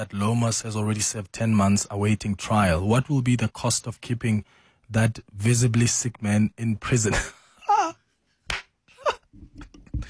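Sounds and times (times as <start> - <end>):
speech: 0.0 - 7.4
single hand clap: 8.5 - 8.7.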